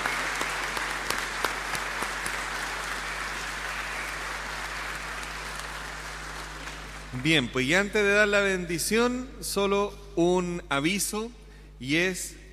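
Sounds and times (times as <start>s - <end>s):
audience applauding the choir: 0.0s - 7.5s
speech: 7.1s - 12.5s.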